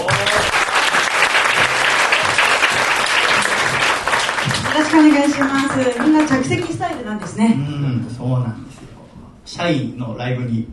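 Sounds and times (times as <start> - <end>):
audience applause: 0.0 - 7.3
speech: 4.9 - 8.8, 9.5 - 10.7.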